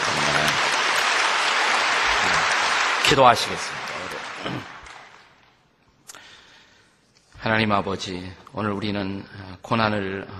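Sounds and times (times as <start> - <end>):
audience applause: 0.0 - 5.6
speech: 3.1 - 3.8, 4.4 - 4.7, 7.4 - 10.3.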